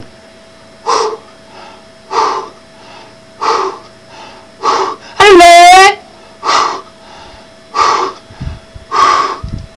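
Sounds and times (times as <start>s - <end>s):
breath blowing: 0.8s - 5.2s, 6.2s - 9.5s.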